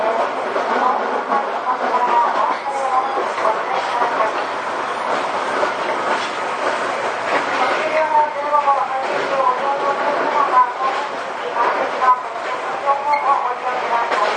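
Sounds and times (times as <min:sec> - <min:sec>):
Tobu 10000 series train running between Asakusa and Kita-Senju: 0:00.0 - 0:14.3
people chattering on a train: 0:00.0 - 0:14.3.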